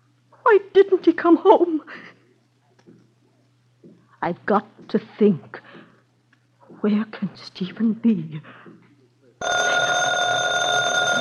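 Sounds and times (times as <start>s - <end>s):
speech: 0.5s - 2.2s, 4.2s - 5.7s, 6.8s - 8.8s
telephone ringing: 9.4s - 11.1s.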